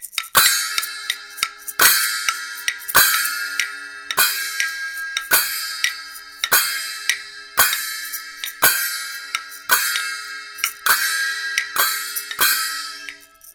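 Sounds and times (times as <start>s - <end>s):
railway music: 0.4s - 13.5s.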